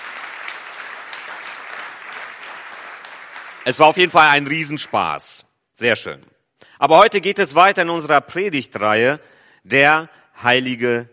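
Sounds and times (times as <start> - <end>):
crowd applauding: 0.0 - 5.4
speech: 3.6 - 11.1.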